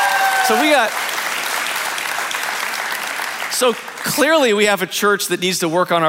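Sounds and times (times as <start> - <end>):
church congregation applauding during a sermon: 0.0 - 4.7
speech: 0.5 - 1.0, 3.6 - 6.0.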